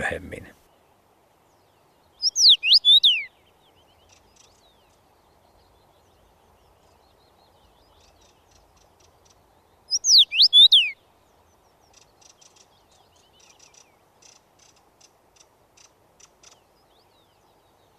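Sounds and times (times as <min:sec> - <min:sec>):
speech: 0:00.0 - 0:00.6
Common Rosefinch singing: 0:01.5 - 0:17.9.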